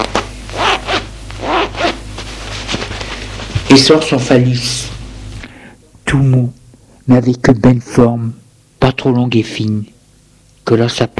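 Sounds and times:
trouser fly zipper being opened: 0.0 - 2.1
speech: 3.7 - 4.9, 6.1 - 10.0, 10.7 - 11.1.

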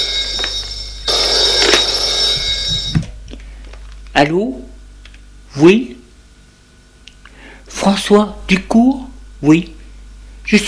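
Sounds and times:
telephone ringing: 0.0 - 3.2
speech: 4.2 - 4.7, 5.6 - 6.0, 7.8 - 9.8, 10.5 - 10.6.

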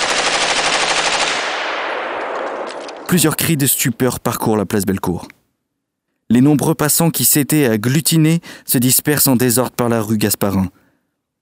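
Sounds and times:
rapid machine gun fire: 0.0 - 3.1
speech: 3.1 - 5.4, 6.3 - 10.8.

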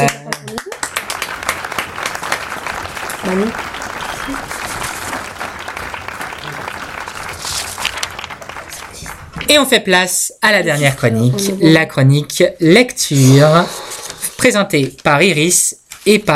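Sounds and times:
speech: 0.0 - 0.2, 3.3 - 3.7, 4.3 - 4.5, 9.5 - 13.8, 14.4 - 16.3
crowd applause: 0.0 - 9.5.

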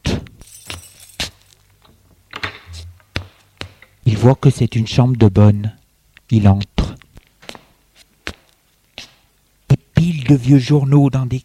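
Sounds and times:
door being opened with keys: 0.4 - 2.8
speech: 4.2 - 6.7, 10.3 - 11.4.

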